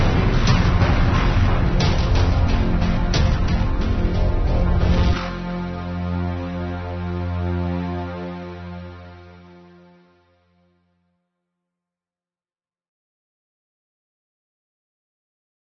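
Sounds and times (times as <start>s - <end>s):
intense cinematic music: 0.0s - 10.8s.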